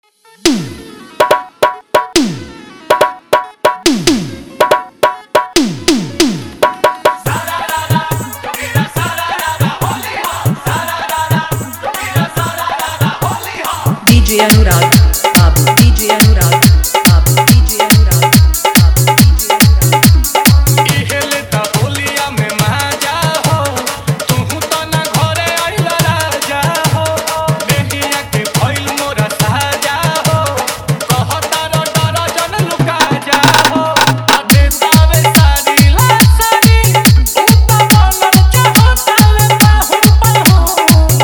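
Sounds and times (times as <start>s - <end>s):
dholak drumming in a hard mix: 0.5s - 41.2s.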